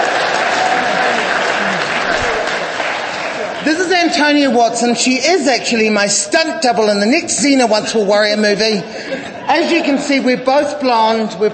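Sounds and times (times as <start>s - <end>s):
audience applause: 0.0s - 4.1s
speech: 4.1s - 11.5s.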